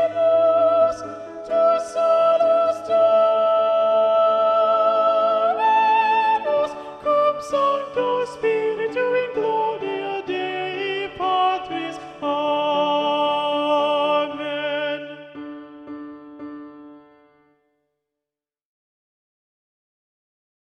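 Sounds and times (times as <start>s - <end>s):
soprano singing a mass: 0.0s - 15.2s.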